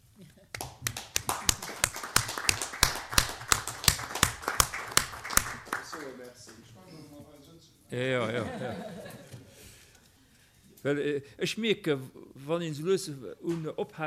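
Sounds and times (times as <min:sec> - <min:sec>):
audience hand claps: 0:00.5 - 0:06.7
speech: 0:07.9 - 0:09.0, 0:10.8 - 0:14.0
laughter: 0:08.1 - 0:09.6.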